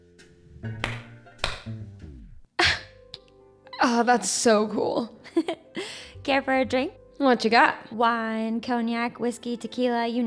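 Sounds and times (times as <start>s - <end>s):
speech: 0.6s - 0.9s, 3.8s - 5.6s, 6.2s - 10.2s
hands clapping to switch off stereo: 0.8s - 1.8s.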